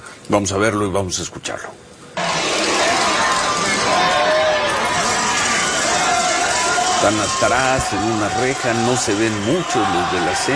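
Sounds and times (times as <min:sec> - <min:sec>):
speech: 0:00.3 - 0:01.9, 0:07.0 - 0:10.5
distant crowd shouting: 0:02.2 - 0:10.5.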